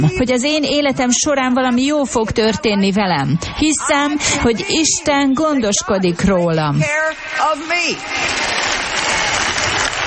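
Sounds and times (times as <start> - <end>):
speech: 0.0 - 8.8
crowd applause: 6.9 - 10.0.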